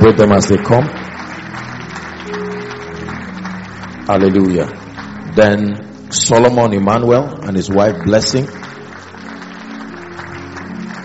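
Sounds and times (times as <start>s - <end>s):
speech: 0.0s - 1.0s, 4.1s - 4.8s, 5.4s - 8.6s
audience applause at a church celebration: 0.0s - 11.0s.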